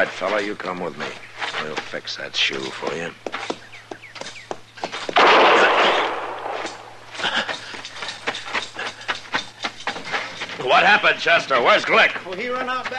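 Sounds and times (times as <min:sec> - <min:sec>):
speech: 0:00.0 - 0:03.6, 0:10.8 - 0:12.9
sharp knocks and scuffling thumps: 0:00.0 - 0:05.6, 0:06.2 - 0:12.9
gunshot: 0:05.2 - 0:07.0.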